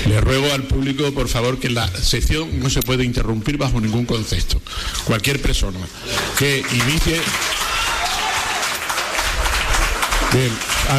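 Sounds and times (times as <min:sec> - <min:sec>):
speech: 0:00.2 - 0:07.6, 0:10.3 - 0:10.9
audience applause in a town council session: 0:06.1 - 0:10.9.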